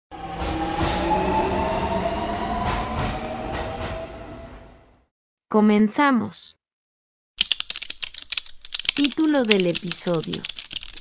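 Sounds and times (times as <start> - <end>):
urban train rumbling at a station in Puerto Rico: 0.1 - 5.0
speech: 5.5 - 6.6, 9.0 - 10.6.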